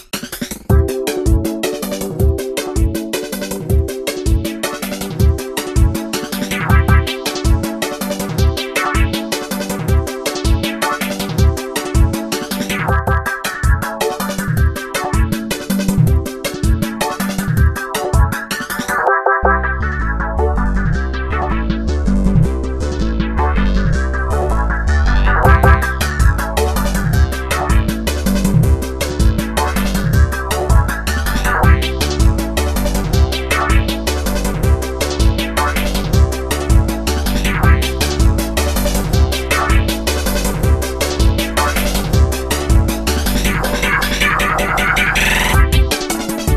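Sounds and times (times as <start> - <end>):
guitar beat: 0.7 - 46.5.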